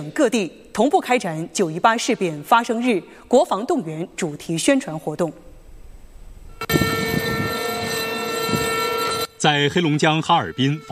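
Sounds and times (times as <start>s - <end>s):
speech: 0.0s - 5.5s, 9.4s - 10.8s
air raid siren: 6.5s - 10.8s.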